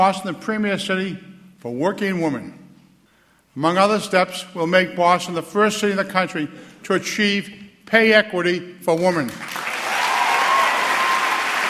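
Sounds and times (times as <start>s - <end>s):
speech: 0.0s - 2.6s, 3.6s - 9.6s
audience applause after Boston Mayor Menino's pay equity pledge during a speech: 9.4s - 11.6s.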